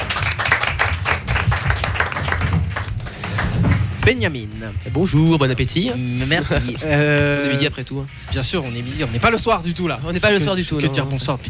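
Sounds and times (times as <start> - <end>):
audience applause: 0.0 - 4.0
speech: 4.1 - 11.4.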